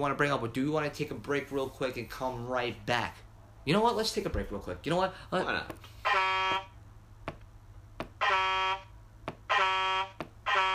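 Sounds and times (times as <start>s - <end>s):
speech: 0.0s - 6.2s
air horns: 5.9s - 6.8s, 8.2s - 8.9s, 9.5s - 10.7s.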